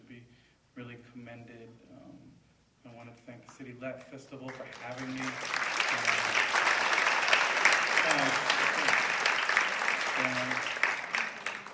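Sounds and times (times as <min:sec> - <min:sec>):
speech: 0:01.2 - 0:06.6, 0:08.0 - 0:08.5, 0:10.2 - 0:10.7
audience applause: 0:04.5 - 0:11.7.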